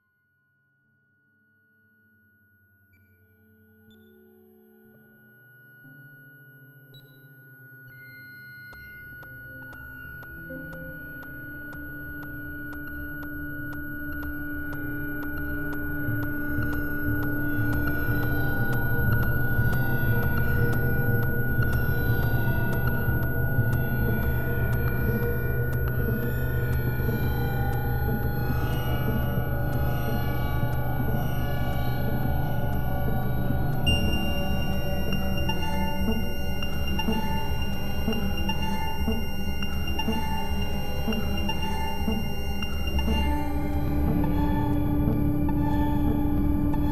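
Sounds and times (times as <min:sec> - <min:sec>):
machine music: 0:10.2 - 0:46.8.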